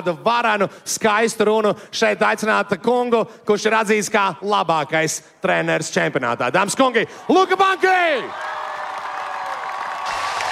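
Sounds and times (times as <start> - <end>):
speech: 0.0 - 8.6
large outdoor crowd applause: 7.3 - 10.5.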